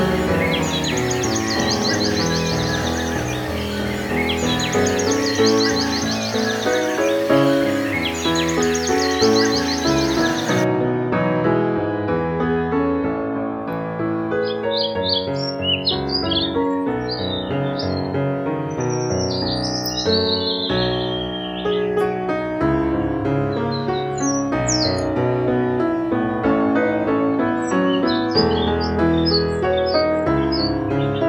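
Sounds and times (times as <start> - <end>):
birdsong in harmony with piano: 0.0 - 10.7, 14.3 - 22.5, 23.2 - 31.2
piano playing: 0.0 - 31.2.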